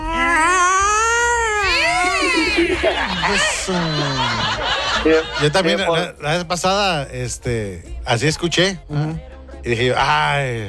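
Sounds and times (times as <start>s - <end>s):
person imitating cats yowling at night: 0.0s - 2.6s
person laughing: 2.2s - 5.6s
speech: 2.8s - 10.6s.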